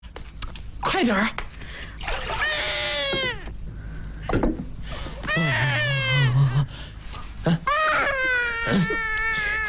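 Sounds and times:
speech: 0:01.0 - 0:02.2
hungry baby crying: 0:02.3 - 0:03.5, 0:05.2 - 0:06.6, 0:07.5 - 0:09.6.

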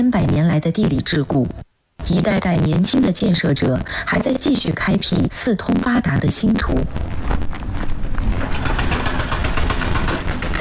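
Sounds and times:
speech: 0:00.0 - 0:07.6
heavy construction machinery operating: 0:06.8 - 0:10.5
faint irregular clatter: 0:07.2 - 0:10.5.

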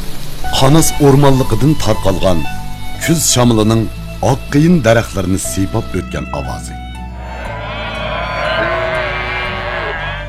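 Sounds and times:
speech: 0:00.6 - 0:06.8
sheep bleating from a flock grazing on a mountain pasture: 0:07.1 - 0:10.2.

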